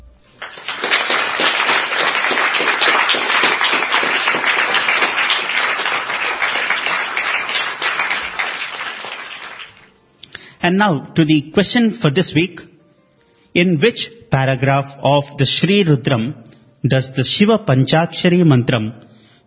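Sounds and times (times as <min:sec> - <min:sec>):
loud round of applause from many hands: 0:00.4 - 0:09.9
speech: 0:10.8 - 0:12.7, 0:13.6 - 0:19.1.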